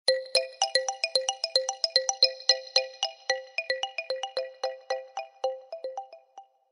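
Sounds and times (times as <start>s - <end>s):
Blackberry Curve bell ringtone: 0.1s - 6.4s.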